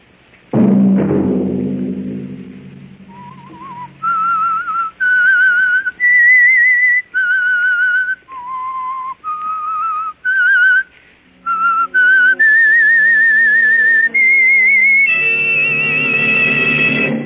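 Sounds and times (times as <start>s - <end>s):
low thudding hit: 0.5s - 4.8s
lone whistler whistling a radio show theme melody: 3.1s - 17.2s.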